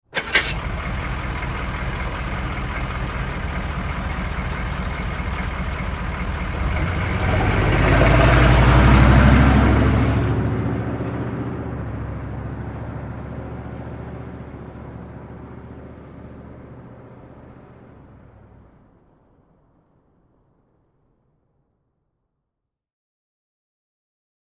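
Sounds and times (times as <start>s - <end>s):
Humvee starting, idling and driving away: 0.1s - 19.8s.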